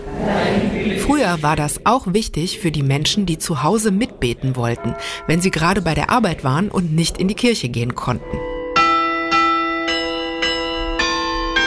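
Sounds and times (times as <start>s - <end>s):
speech: 0.2s - 8.4s
church bells ringing: 4.6s - 7.2s, 8.0s - 11.6s.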